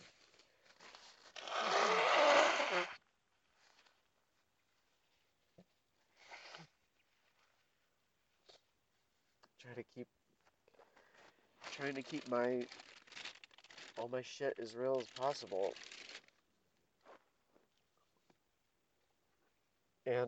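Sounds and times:
person blowing nose: 1.3s - 3.0s, 6.2s - 6.7s
speech: 11.9s - 12.9s, 14.0s - 15.9s, 20.1s - 20.2s.

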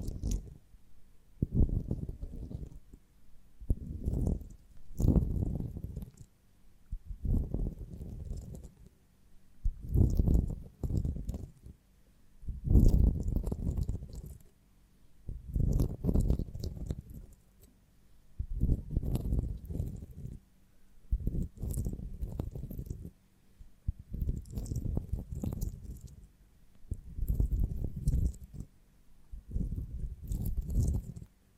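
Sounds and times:
chewing honeycomb on branch: 0.0s - 0.6s, 1.4s - 3.0s, 3.7s - 6.3s, 7.2s - 8.9s, 9.7s - 11.7s, 12.7s - 14.5s, 15.4s - 17.8s, 18.5s - 20.4s, 21.1s - 23.1s, 23.9s - 28.7s, 29.4s - 31.3s.

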